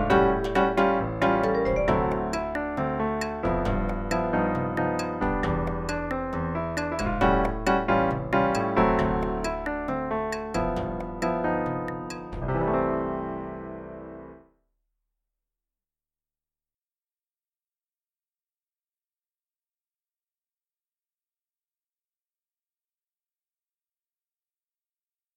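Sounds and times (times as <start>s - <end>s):
bossa nova percussion: 0.0s - 12.6s.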